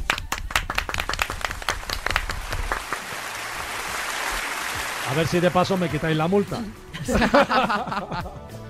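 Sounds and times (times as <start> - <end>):
applause: 0.0 - 6.6
speech: 5.1 - 8.6
laughter: 6.9 - 8.5.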